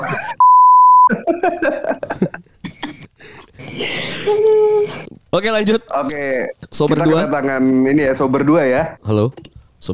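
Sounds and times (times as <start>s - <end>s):
censor bleep: 0.4s - 1.1s
laughter: 1.1s - 3.1s
speech: 1.4s - 2.0s, 5.4s - 9.9s.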